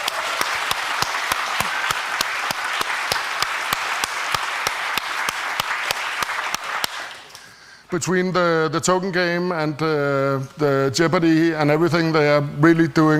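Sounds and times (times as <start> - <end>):
audience applause: 0.0 - 7.5
speech: 7.9 - 13.1.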